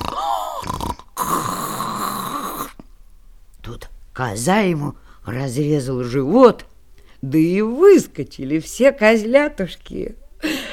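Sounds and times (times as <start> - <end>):
voice imitating a wolf snoring: 0.0 - 2.8
speech: 4.2 - 10.6.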